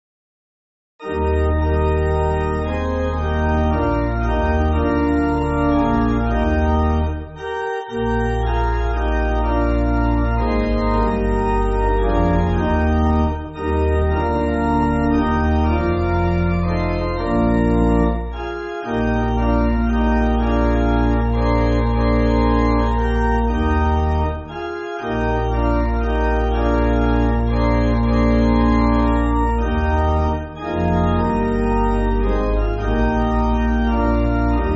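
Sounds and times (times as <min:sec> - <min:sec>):
pipe organ backing music for churches: 0:01.0 - 0:34.7.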